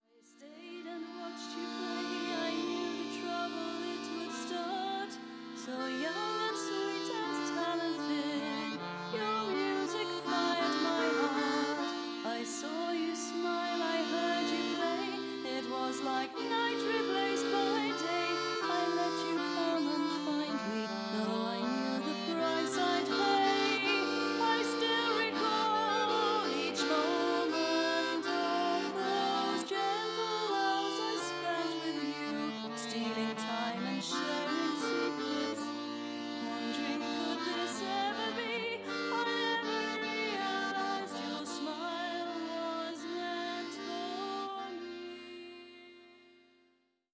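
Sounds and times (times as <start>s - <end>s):
accordion: 0.0s - 47.1s.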